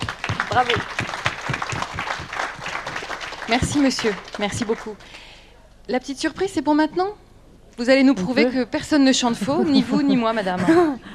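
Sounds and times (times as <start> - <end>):
audience applause: 0.0 - 5.4
speech: 0.5 - 1.0, 3.5 - 5.2, 5.9 - 7.2, 7.8 - 11.1
laughter: 9.3 - 11.1.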